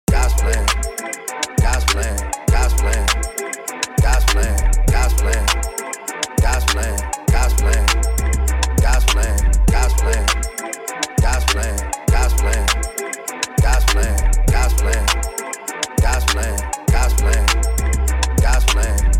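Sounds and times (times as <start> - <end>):
funk music: 0.1 - 19.1.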